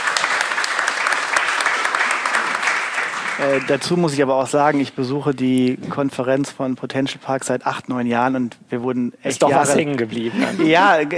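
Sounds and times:
applause: 0:00.0 - 0:04.2
speech: 0:03.4 - 0:11.1.

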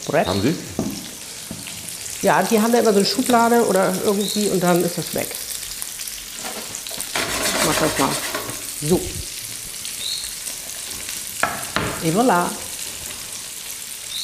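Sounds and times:
speech: 0:00.0 - 0:00.8, 0:02.2 - 0:05.4, 0:07.8 - 0:09.3, 0:12.0 - 0:12.6
chorizo sizzling in a pan: 0:00.0 - 0:14.2
clatter of stirring: 0:06.4 - 0:08.8.

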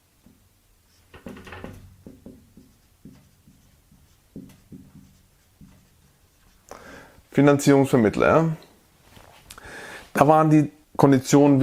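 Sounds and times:
pen writing something down by hand: 0:02.0 - 0:06.7
speech: 0:07.4 - 0:08.6, 0:10.2 - 0:11.6.

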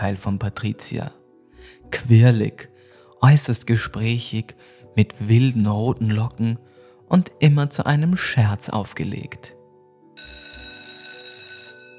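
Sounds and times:
speech: 0:00.0 - 0:09.6
school bell ringing: 0:10.2 - 0:11.9.

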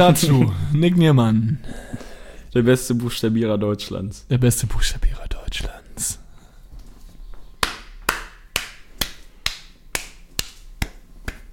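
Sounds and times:
speech: 0:00.0 - 0:01.9, 0:02.6 - 0:06.2
boy clapping hands repeatedly: 0:07.6 - 0:11.5.

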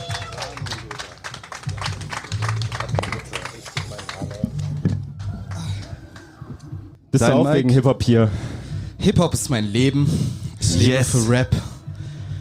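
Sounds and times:
audience applause and noise: 0:00.0 - 0:06.8
speech: 0:07.1 - 0:11.6.

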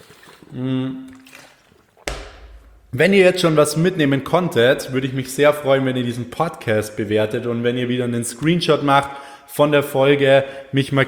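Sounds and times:
person sipping water: 0:00.0 - 0:02.9
speech: 0:00.5 - 0:01.0, 0:03.0 - 0:11.0.

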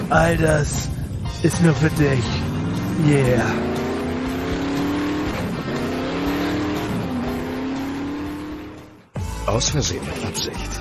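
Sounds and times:
speech: 0:00.1 - 0:03.7, 0:09.5 - 0:10.7
fast car engine revving and racing: 0:01.3 - 0:09.1.

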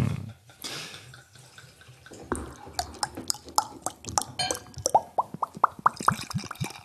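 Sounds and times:
beer glugging from a bottle into a glass: 0:02.1 - 0:06.8.

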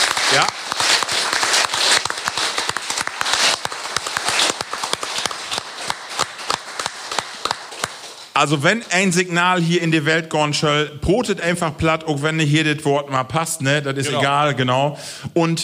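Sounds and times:
audience applause: 0:00.0 - 0:09.3
speech: 0:00.3 - 0:00.6, 0:08.4 - 0:15.6.

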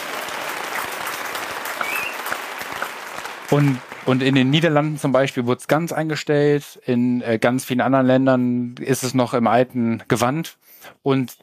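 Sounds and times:
whistles and cheers: 0:00.0 - 0:04.5
audience applause: 0:00.0 - 0:05.3
speech: 0:03.5 - 0:11.4.

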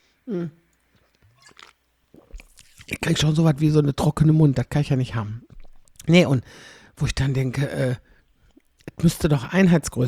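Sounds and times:
speech: 0:00.3 - 0:00.6, 0:03.0 - 0:08.1, 0:08.9 - 0:10.0
person gulping a drink: 0:01.0 - 0:03.2, 0:05.4 - 0:06.1.

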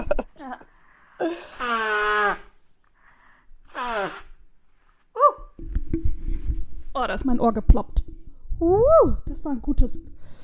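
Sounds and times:
speech: 0:00.4 - 0:02.4, 0:07.0 - 0:10.4
nose blowing: 0:01.3 - 0:02.6, 0:03.6 - 0:04.5.

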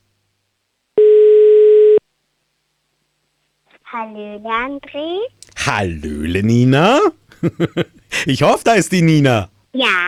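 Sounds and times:
telephone ringback tone: 0:01.0 - 0:02.0
speech: 0:03.9 - 0:10.0.

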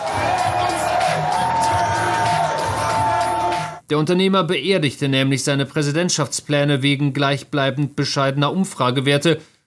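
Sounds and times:
crowd of supporters cheering and whooping at campaign event: 0:00.0 - 0:03.8
scattered shouts: 0:00.0 - 0:03.8
speech: 0:03.9 - 0:09.5.

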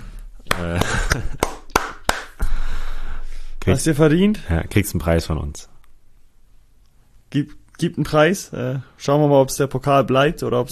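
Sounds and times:
clapping: 0:00.5 - 0:02.4
speech: 0:03.6 - 0:05.7, 0:07.3 - 0:10.6.

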